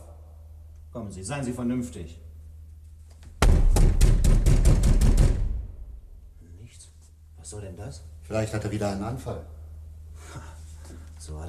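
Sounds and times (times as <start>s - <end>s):
speech: 1.0s - 2.3s, 7.5s - 9.6s, 11.2s - 11.4s
heavy pounding on a door barricaded from inside with furniture: 3.4s - 6.0s.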